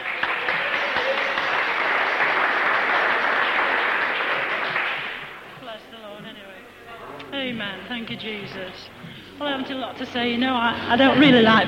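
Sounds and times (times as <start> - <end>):
audience clapping: 0.0 - 5.7
speech: 7.9 - 11.6.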